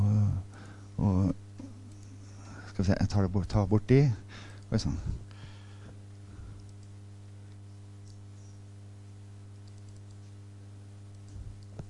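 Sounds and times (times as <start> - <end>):
loud steady mains hum: 0.0 - 11.8
computer keyboard typing: 1.9 - 2.4, 9.6 - 10.3
speech: 2.8 - 5.3.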